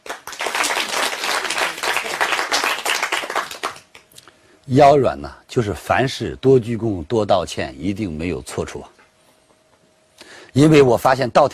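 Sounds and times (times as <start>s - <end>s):
audience applause: 0.0s - 4.0s
speech: 4.7s - 9.0s, 10.6s - 11.5s.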